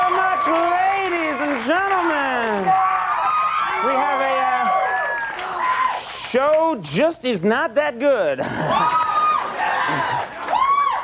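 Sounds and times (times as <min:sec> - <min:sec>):
live comedy show audience cheering and whooping: 0:00.0 - 0:06.3, 0:08.6 - 0:11.0
speech: 0:06.4 - 0:09.0.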